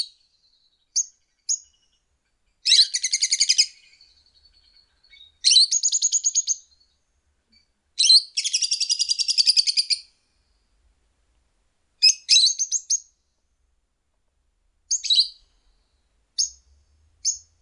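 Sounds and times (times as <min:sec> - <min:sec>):
lovebird calls: 0:02.6 - 0:06.9, 0:08.0 - 0:10.1, 0:12.0 - 0:13.1, 0:14.9 - 0:15.5, 0:16.4 - 0:16.6, 0:17.2 - 0:17.5.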